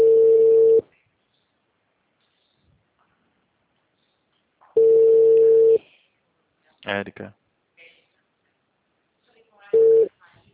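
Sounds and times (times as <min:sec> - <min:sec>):
telephone ringing tone: 0:00.0 - 0:00.8, 0:04.8 - 0:05.8, 0:09.8 - 0:10.1
speech: 0:06.9 - 0:07.4.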